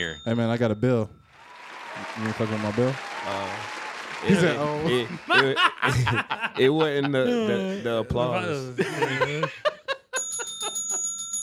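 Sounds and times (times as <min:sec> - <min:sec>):
speech: 0:00.0 - 0:01.2, 0:02.0 - 0:09.8
bell ringing with a bright metallic tone: 0:00.0 - 0:02.8, 0:10.2 - 0:11.4
people laughing: 0:04.2 - 0:10.8.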